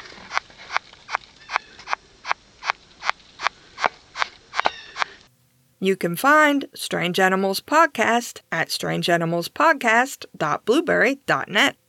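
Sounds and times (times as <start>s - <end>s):
long-horned beetle larvae chewing through wood: 0.0s - 5.3s
speech: 5.8s - 11.8s.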